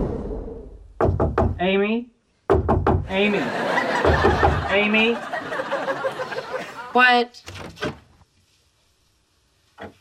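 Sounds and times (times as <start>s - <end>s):
knocking on a door: 1.0s - 1.6s, 2.5s - 3.1s, 4.0s - 4.7s
speech: 1.6s - 2.2s, 3.1s - 5.4s, 6.9s - 7.8s
laughter: 3.2s - 7.0s.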